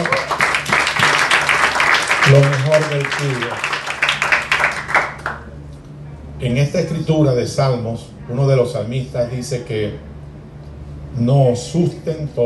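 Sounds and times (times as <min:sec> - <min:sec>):
audience applauding: 0:00.0 - 0:05.5
speech: 0:02.3 - 0:03.7, 0:06.4 - 0:10.1, 0:11.2 - 0:12.4.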